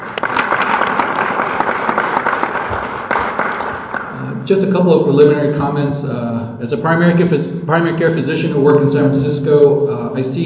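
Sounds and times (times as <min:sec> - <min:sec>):
crowd clapping: 0:00.0 - 0:04.3
speech: 0:04.5 - 0:10.4.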